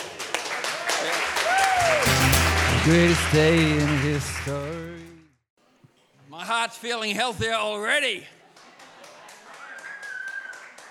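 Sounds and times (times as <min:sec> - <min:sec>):
group clapping hands: 0:00.0 - 0:05.2, 0:08.6 - 0:10.9
speech: 0:02.8 - 0:05.1, 0:06.4 - 0:08.4.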